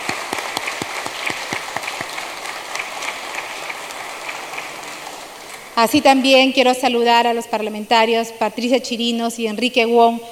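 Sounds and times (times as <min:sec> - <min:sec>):
applause: 0:00.0 - 0:06.0
speech: 0:05.8 - 0:10.3.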